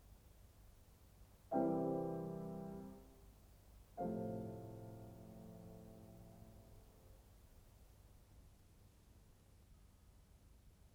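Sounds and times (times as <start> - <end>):
piano sonata: 1.5 - 3.3, 4.0 - 7.0.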